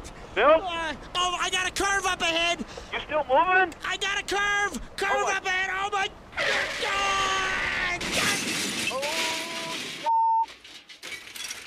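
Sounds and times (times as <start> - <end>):
speech: 0.4 - 7.6
car crash: 6.4 - 11.6
glass breaking: 8.0 - 11.6.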